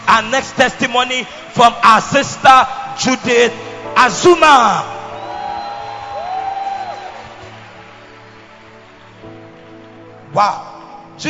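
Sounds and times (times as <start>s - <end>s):
church congregation applauding: 0.0s - 11.2s
speech: 0.2s - 5.0s, 10.4s - 11.2s
congregation whoops and shouts: 5.0s - 7.6s.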